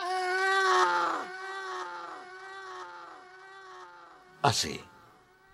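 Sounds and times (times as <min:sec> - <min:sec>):
traditional shout: 0:00.0 - 0:04.3
speech: 0:04.4 - 0:04.9.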